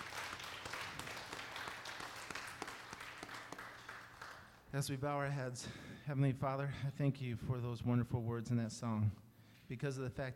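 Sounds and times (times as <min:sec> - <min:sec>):
audience hand clapping: 0:00.0 - 0:04.7
speech: 0:04.7 - 0:10.3.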